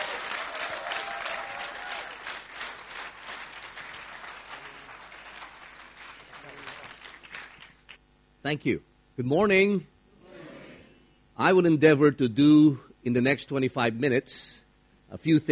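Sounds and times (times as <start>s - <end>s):
church congregation applause welcoming a visiting pastor: 0.0s - 8.0s
speech: 8.4s - 9.9s, 11.4s - 15.5s.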